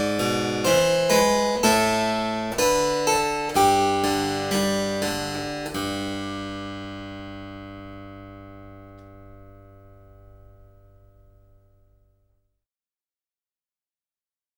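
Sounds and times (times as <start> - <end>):
harpsichord: 0.0 - 10.6.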